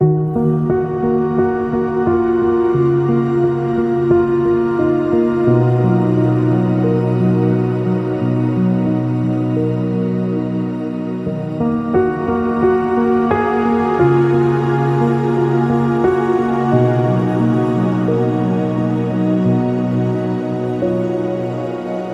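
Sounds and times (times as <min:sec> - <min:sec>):
ambient piano: 0:00.0 - 0:22.1.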